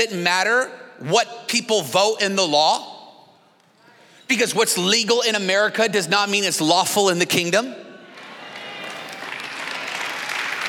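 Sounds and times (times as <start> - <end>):
speech: 0.0 - 2.9, 4.3 - 7.9
scattered clapping from part of audience: 8.2 - 10.6.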